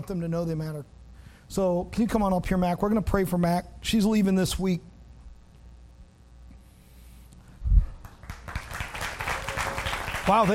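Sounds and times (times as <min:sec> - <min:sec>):
speech: 0:00.0 - 0:04.9, 0:10.3 - 0:10.5
audience clapping for departing student: 0:08.0 - 0:10.5.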